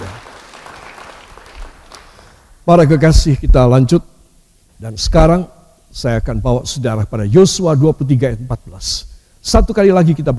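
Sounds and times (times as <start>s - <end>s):
audience applause: 0.0s - 2.4s
speech: 2.6s - 4.1s, 4.8s - 10.3s.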